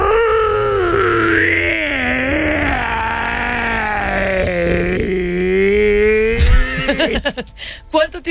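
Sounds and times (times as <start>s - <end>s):
person's voice imitating a hoarse wolf-like howl: 0.0s - 7.3s
laughter: 6.7s - 7.5s.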